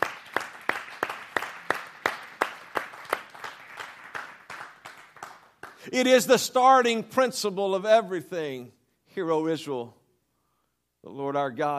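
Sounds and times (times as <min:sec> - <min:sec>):
audience clapping hands: 0:00.0 - 0:06.4
speech: 0:05.8 - 0:10.0, 0:11.0 - 0:11.7.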